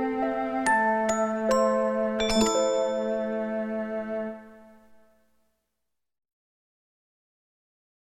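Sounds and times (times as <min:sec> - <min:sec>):
music box: 0:00.0 - 0:03.4.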